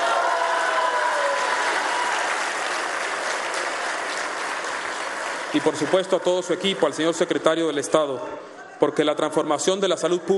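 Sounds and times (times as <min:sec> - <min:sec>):
loud audience applause: 0:00.0 - 0:07.0
speech: 0:05.5 - 0:10.3.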